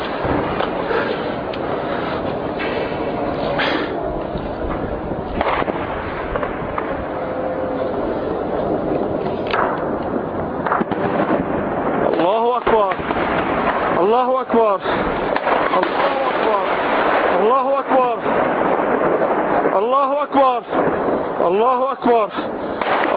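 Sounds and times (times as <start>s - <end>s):
heavy shelling of the Baba Amr and Al-Inshaat districts: 0.0s - 23.1s
loud rumbling background: 0.0s - 23.1s.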